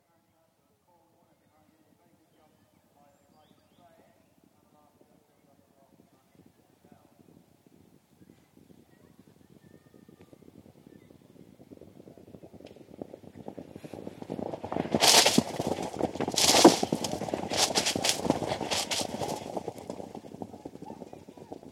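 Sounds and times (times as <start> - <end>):
point-to-point racing field of horses passing over a jump with one straggler: 9.4 - 21.7.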